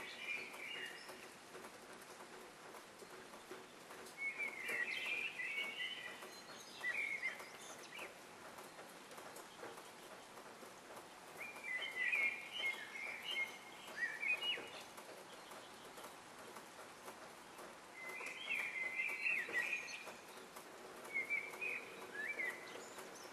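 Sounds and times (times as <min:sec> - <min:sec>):
morning birds: 0:00.0 - 0:23.3.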